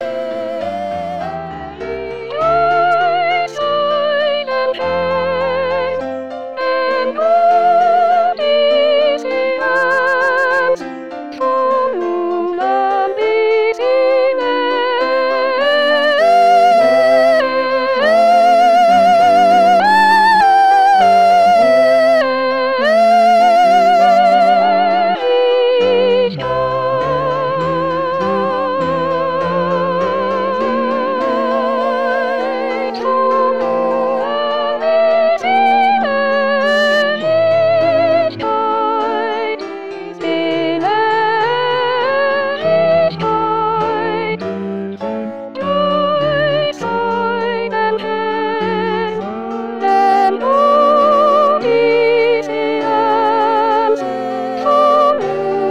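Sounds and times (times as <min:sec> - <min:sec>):
soprano singing a psalm: 0:00.0 - 0:55.7.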